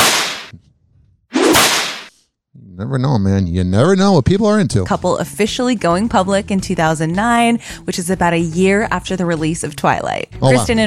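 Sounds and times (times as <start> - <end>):
whip crack sound effect: 0.0 - 0.5, 1.4 - 2.1
speech: 2.8 - 10.8.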